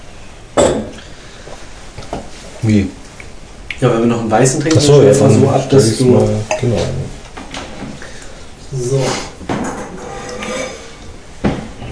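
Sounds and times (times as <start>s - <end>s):
speech: 2.6s - 3.0s, 3.8s - 7.1s, 8.7s - 9.3s
wine glass clinking: 6.5s - 6.7s.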